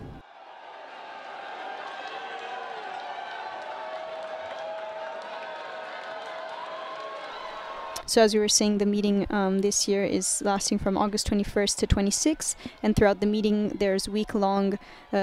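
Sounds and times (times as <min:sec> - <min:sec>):
large crowd applauding a passing visitor: 0:00.0 - 0:08.1
large crowd cheering a passing visitor: 0:00.0 - 0:08.2, 0:12.0 - 0:15.2
speech: 0:08.1 - 0:15.2.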